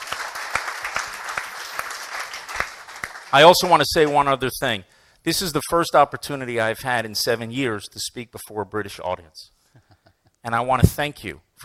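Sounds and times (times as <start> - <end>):
audience applauding: 0.0 - 4.2
speech: 3.3 - 9.6, 10.4 - 11.6.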